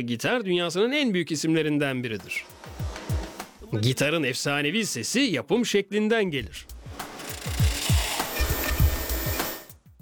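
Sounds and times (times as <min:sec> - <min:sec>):
speech: 0:00.0 - 0:02.7, 0:03.7 - 0:06.7
wood passing through wide-belt sanding machine: 0:02.3 - 0:03.6, 0:06.8 - 0:09.6.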